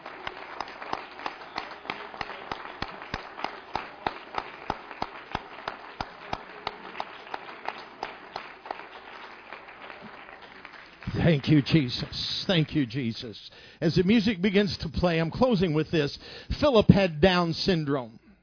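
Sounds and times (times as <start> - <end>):
crowd clapping hands in applause: 0.0 - 13.1
speech: 11.3 - 18.2.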